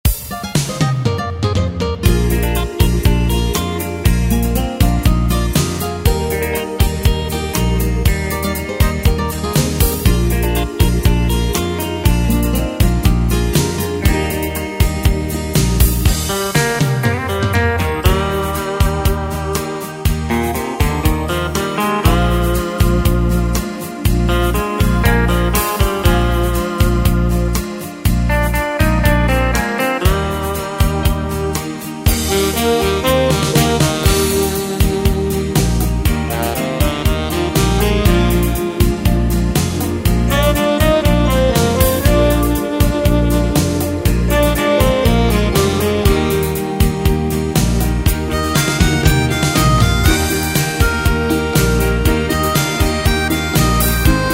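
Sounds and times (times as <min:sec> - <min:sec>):
1970s Schlager pop music: 0:00.0 - 0:54.3.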